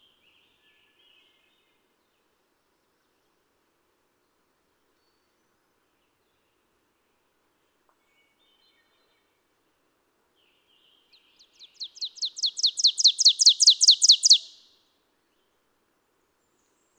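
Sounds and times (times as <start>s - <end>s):
ovenbird call: 11.8s - 14.7s.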